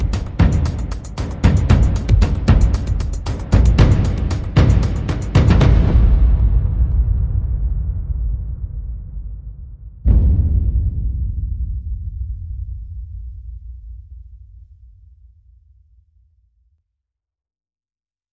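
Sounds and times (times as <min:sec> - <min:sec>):
percussion: 0:00.0 - 0:14.3.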